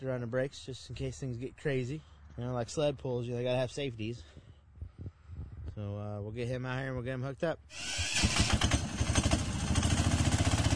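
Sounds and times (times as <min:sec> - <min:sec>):
speech: 0:00.0 - 0:04.4, 0:05.8 - 0:08.7
small vehicle engine starting up and puttering: 0:07.7 - 0:10.7.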